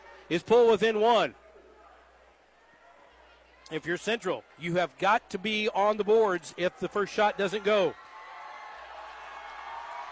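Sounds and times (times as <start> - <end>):
speech: 0.3 - 1.4, 3.7 - 8.0
basketball crowd roaring and cheering: 5.9 - 10.1.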